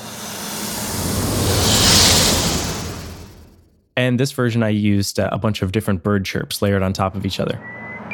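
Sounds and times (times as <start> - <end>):
TIE Fighter sound effect made from a snake sound: 0.0 - 3.7
speech: 4.0 - 7.8.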